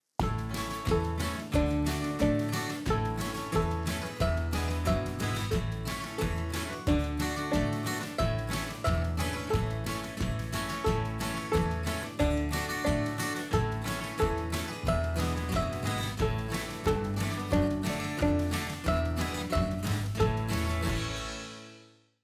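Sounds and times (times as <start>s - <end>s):
violin: 0.2s - 21.4s.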